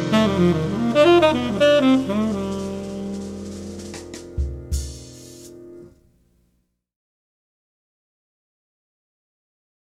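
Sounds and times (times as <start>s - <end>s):
blues trumpet: 0.0s - 5.9s.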